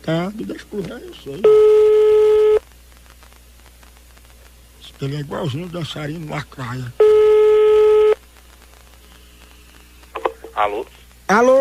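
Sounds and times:
speech: 0.0s - 2.4s, 5.0s - 7.0s, 10.6s - 11.5s
telephone line tone: 1.5s - 2.6s, 7.0s - 8.2s.

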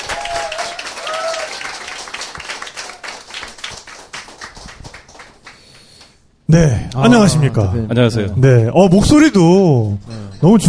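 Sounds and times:
welcoming audience applause: 0.0s - 5.8s
speech: 6.5s - 10.6s.

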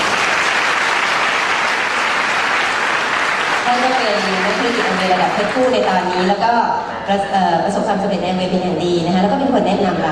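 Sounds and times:
audience applause: 0.0s - 6.4s
speech: 5.0s - 10.1s.

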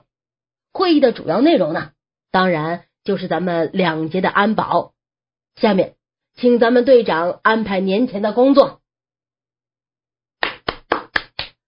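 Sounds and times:
speech: 0.8s - 4.9s, 5.6s - 8.8s
single person clapping: 10.4s - 11.6s.

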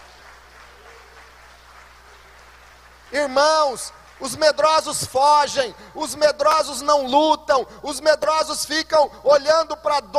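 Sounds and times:
audience applause: 0.0s - 4.8s
speech: 3.1s - 10.1s.

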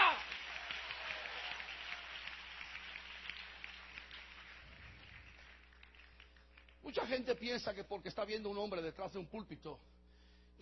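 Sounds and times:
audience applause: 0.0s - 6.8s
speech: 6.9s - 10.0s.

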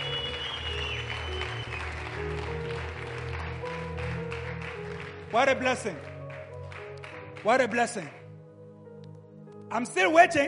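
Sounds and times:
audience clapping: 0.0s - 8.3s
sustained low musical tones: 0.0s - 10.4s
speech: 5.3s - 6.1s, 7.4s - 8.2s, 9.7s - 10.4s.

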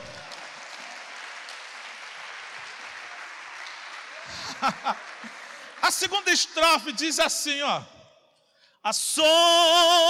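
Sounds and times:
audience applause: 0.0s - 6.9s
laughter: 4.2s - 5.9s
speech: 4.6s - 8.0s, 8.8s - 10.0s.

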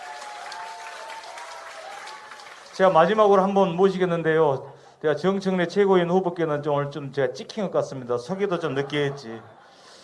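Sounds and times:
crowd applauding: 0.0s - 3.2s
speech: 2.8s - 9.6s
laughter: 8.3s - 10.0s.

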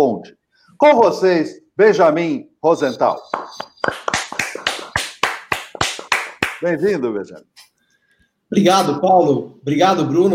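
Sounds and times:
speech: 0.0s - 3.6s, 6.6s - 7.5s, 8.5s - 10.3s
hand clapping: 3.2s - 6.8s.

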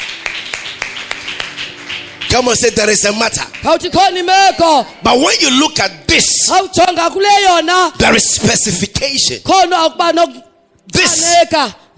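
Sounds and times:
church congregation clapping: 0.0s - 4.8s
speech: 2.3s - 11.9s.

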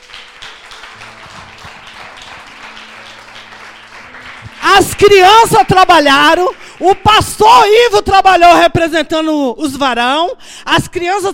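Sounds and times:
audience applauding: 0.0s - 8.1s
speech: 4.7s - 11.3s.

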